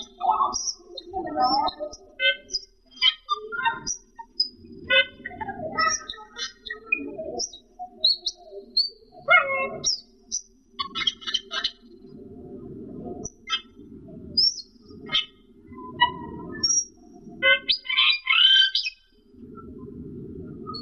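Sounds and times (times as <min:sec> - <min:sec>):
Camperling singing whistles and chattering: 0:00.0 - 0:05.2, 0:05.8 - 0:09.0, 0:09.7 - 0:11.8, 0:17.6 - 0:19.0.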